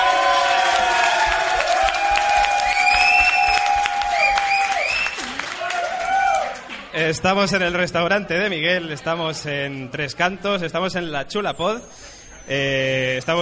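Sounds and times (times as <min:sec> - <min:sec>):
applause at a restaurant in Tres Cantos: 0:00.0 - 0:06.9
crowd cheering at a restaurant in Tres Cantos: 0:00.0 - 0:06.9
speech: 0:07.1 - 0:13.4.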